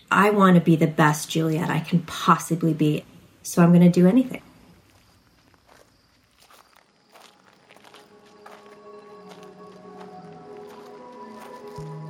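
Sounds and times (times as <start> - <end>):
speech: 0.1 - 4.5
footsteps on a gravel and stone walking ramp in the woods at night: 4.7 - 12.0.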